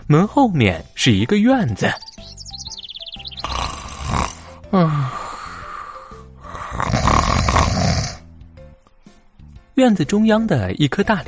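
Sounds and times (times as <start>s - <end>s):
speech: 0.1s - 2.1s, 4.7s - 5.2s, 9.8s - 11.2s
loud snoring: 3.4s - 5.6s, 6.4s - 8.3s.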